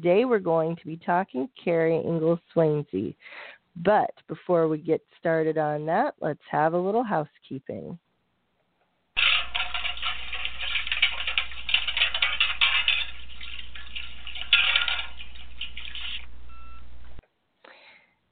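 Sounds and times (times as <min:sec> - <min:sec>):
speech: 0:00.0 - 0:08.0
metal plates washed in a metal wash tub on the stove: 0:09.2 - 0:16.2.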